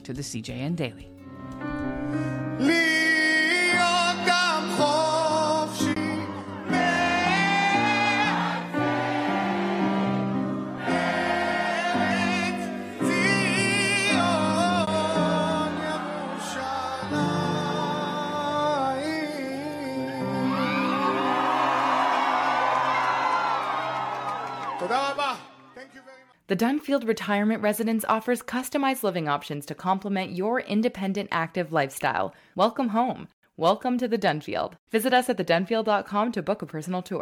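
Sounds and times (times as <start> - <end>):
musical backing: 0.0 - 25.7
speech: 0.1 - 2.9, 26.6 - 37.2
singer performing a national anthem live at a march rally: 2.4 - 8.7, 10.9 - 21.5
crowd cheering and whooping at a Washington march rally: 6.2 - 12.1, 20.2 - 25.8.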